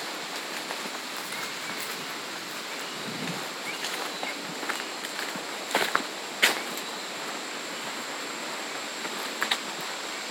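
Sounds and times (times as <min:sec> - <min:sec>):
footsteps on a farm trail: 0:00.0 - 0:08.2
steady hiss of outdoor air: 0:00.0 - 0:10.2.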